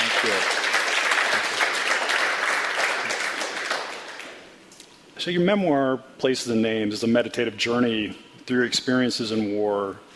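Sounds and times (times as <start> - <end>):
audience applauding to welcome a guest speaker: 0.0 - 4.5
speech: 0.2 - 0.6, 5.2 - 10.1.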